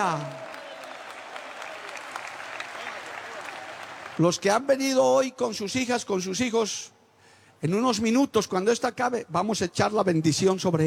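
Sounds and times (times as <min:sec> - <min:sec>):
speech: 0:00.0 - 0:00.4, 0:04.2 - 0:07.0, 0:07.6 - 0:10.8
audience applauding: 0:00.0 - 0:04.2.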